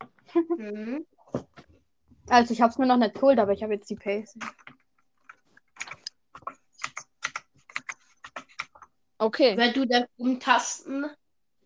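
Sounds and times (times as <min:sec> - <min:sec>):
speech: 0:00.4 - 0:01.2, 0:02.3 - 0:04.6, 0:09.2 - 0:11.2
typing on a computer keyboard: 0:04.4 - 0:08.9.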